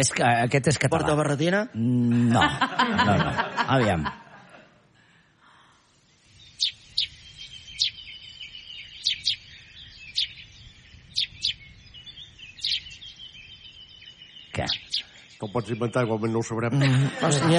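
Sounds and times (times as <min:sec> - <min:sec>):
speech: 0:00.0 - 0:04.2, 0:14.6 - 0:14.8, 0:15.4 - 0:17.5
laughter: 0:02.0 - 0:04.9, 0:16.6 - 0:17.5
sparrow chirping: 0:05.8 - 0:16.8.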